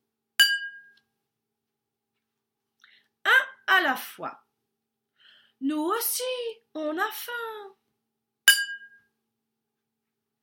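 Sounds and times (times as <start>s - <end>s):
glass of water clinking: 0.4s - 1.0s, 8.5s - 9.1s
speech: 3.9s - 4.4s, 5.6s - 7.8s.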